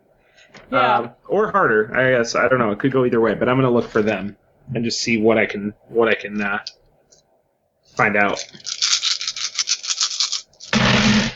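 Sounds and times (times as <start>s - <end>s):
speech: 0.7s - 6.8s, 8.0s - 8.8s
many dice rolling: 8.3s - 11.3s.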